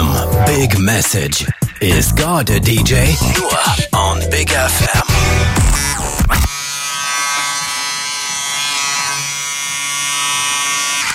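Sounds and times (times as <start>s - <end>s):
speech: 0.6s - 6.6s
electric shaver buzzing: 4.9s - 11.1s.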